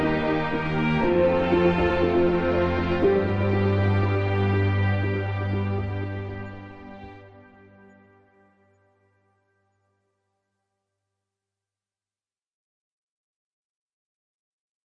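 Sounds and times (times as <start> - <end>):
ambient music: 0.0 - 9.2.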